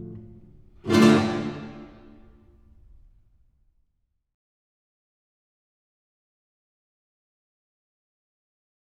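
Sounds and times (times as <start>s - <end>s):
rumba music: 0.3s - 2.4s.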